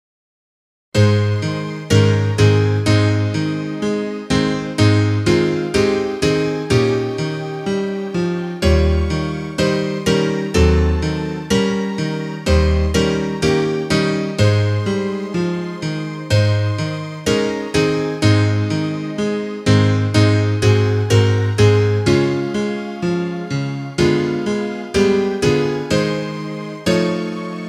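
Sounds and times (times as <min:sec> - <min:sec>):
instrumental music: 0:01.0 - 0:27.6.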